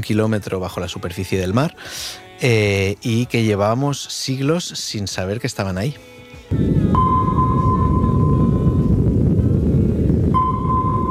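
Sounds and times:
speech: 0.0s - 7.1s
low rumble: 6.5s - 11.0s
sonar ping: 7.0s - 9.0s, 10.4s - 11.0s.

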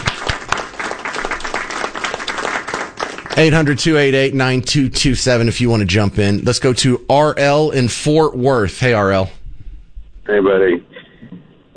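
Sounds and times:
crowd applause: 0.0s - 4.0s
speech: 3.4s - 9.4s, 10.3s - 10.9s.

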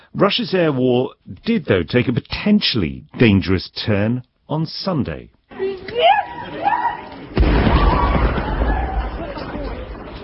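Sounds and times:
speech: 0.2s - 5.4s
people screaming as a train is struck by a Russian drone: 5.6s - 9.9s.

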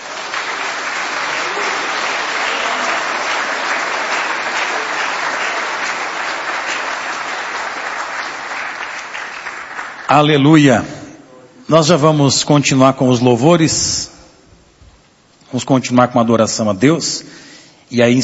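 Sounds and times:
audience applauding: 0.0s - 10.4s
speech: 10.1s - 11.0s, 11.7s - 14.1s, 15.5s - 18.2s.

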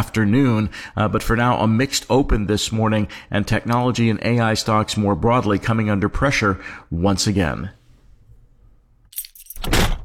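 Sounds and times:
speech: 0.0s - 7.8s
car keys jangling: 9.1s - 9.8s.

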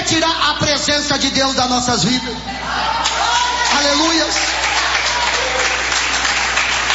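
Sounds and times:
speech: 0.1s - 4.7s
congregation clapping during a worship service: 3.0s - 6.9s.

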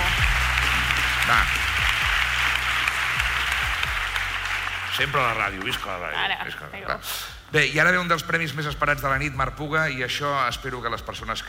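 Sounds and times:
audience applause at an awards ceremony: 0.0s - 6.3s
speech: 1.3s - 1.6s, 5.0s - 11.4s.

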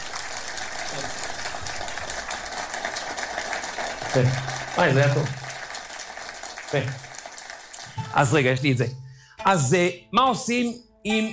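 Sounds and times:
audience clapping: 0.0s - 8.9s
speech: 4.1s - 5.4s, 6.7s - 7.0s, 8.2s - 11.3s.

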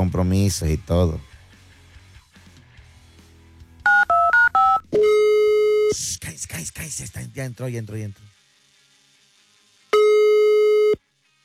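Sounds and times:
speech: 0.0s - 1.3s, 7.0s - 8.3s
touch-tone keypad dialing a telephone number: 3.9s - 5.8s
steady telephone tone: 3.9s - 6.0s, 10.0s - 11.0s.

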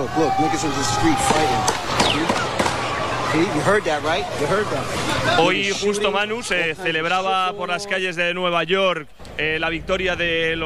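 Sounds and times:
crowd noise and voices: 0.0s - 10.6s
speech: 0.1s - 2.5s, 3.3s - 10.6s
gunshots in Times Square: 1.2s - 3.2s.

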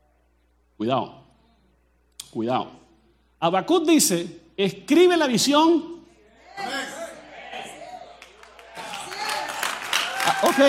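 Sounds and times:
speech: 0.8s - 1.2s, 2.3s - 2.8s, 3.4s - 6.0s, 6.6s - 6.9s, 10.4s - 10.6s
audience clapping: 8.0s - 10.6s.

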